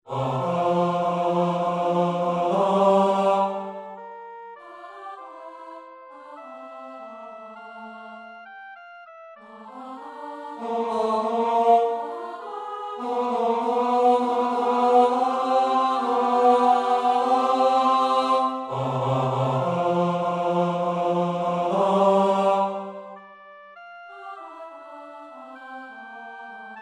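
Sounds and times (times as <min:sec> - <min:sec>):
male choir singing: 0:00.1 - 0:04.0, 0:09.5 - 0:23.2.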